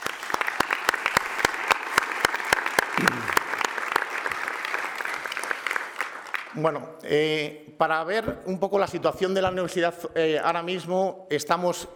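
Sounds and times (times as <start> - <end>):
audience applause: 0.0 - 6.6
speech: 6.6 - 11.9.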